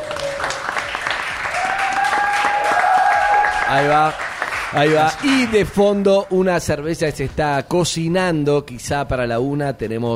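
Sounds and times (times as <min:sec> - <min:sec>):
audience applause: 0:00.0 - 0:06.5
speech: 0:03.7 - 0:10.1.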